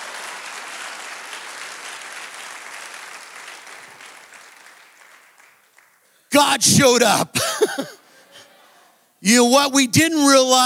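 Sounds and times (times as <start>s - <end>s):
audience hand clapping: 0.0s - 6.2s
speech: 6.4s - 8.0s, 9.2s - 10.6s.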